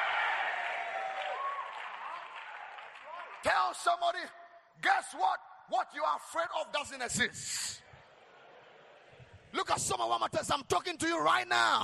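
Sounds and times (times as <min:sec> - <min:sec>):
audience shouting: 0:00.0 - 0:02.5
audience clapping: 0:00.0 - 0:04.0
speech: 0:03.4 - 0:07.9, 0:09.5 - 0:11.8.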